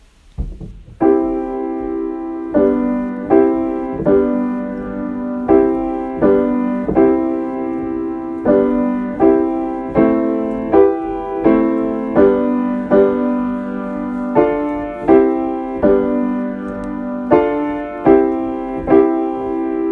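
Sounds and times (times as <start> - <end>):
instrumental music: 0.0 - 19.9.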